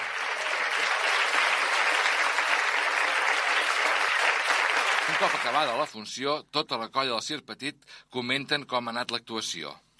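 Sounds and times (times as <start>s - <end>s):
audience applause: 0.0s - 5.9s
speech: 5.2s - 9.8s.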